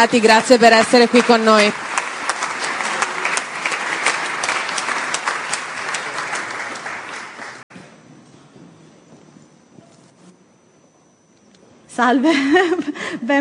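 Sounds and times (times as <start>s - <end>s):
speech: 0.0s - 2.0s, 12.0s - 13.4s
crowd applause welcoming the Minister for Institutional Reforms and Regulatory Simplification: 0.0s - 7.7s.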